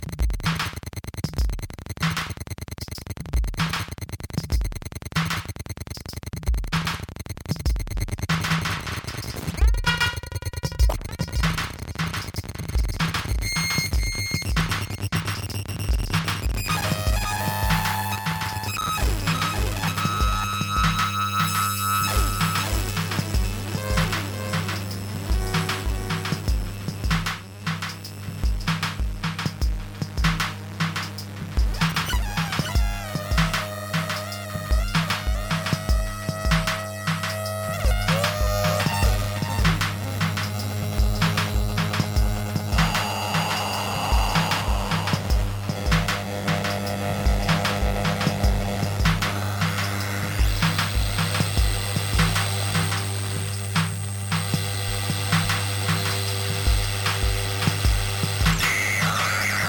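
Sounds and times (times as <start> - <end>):
noise: 0.0 - 59.6.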